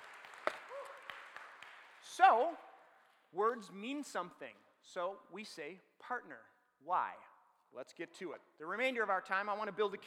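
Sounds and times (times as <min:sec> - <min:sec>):
audience applause: 0:00.0 - 0:02.0
person whooping: 0:00.7 - 0:01.1
speech: 0:02.2 - 0:02.7, 0:03.3 - 0:10.0.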